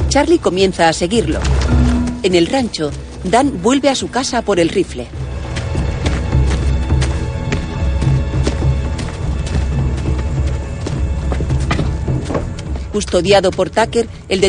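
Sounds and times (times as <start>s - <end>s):
speech: 0.1s - 5.2s, 13.0s - 14.4s
horses pulling a wagon clip-clopping: 1.2s - 14.4s
low rumble of a wagon: 1.4s - 3.1s.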